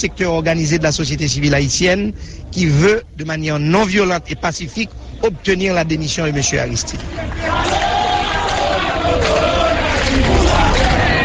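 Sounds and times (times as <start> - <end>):
speech: 0.0 - 8.0
large crowd chanting in chorus: 6.9 - 11.2.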